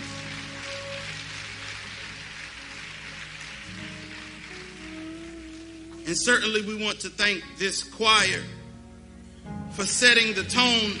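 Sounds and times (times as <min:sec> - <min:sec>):
audience clapping: 0:00.0 - 0:06.7
sustained keyboard or organ chords: 0:00.0 - 0:10.9
speech: 0:06.1 - 0:08.6, 0:09.8 - 0:10.9.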